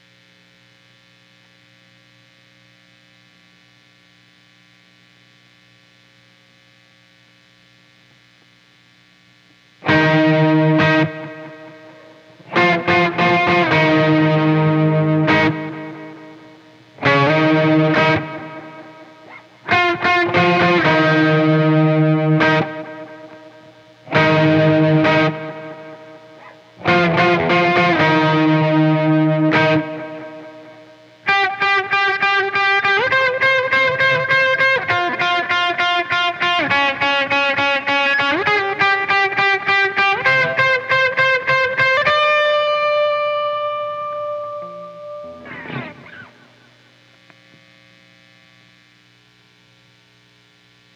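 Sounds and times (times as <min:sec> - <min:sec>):
guitar: 0:09.5 - 0:48.7.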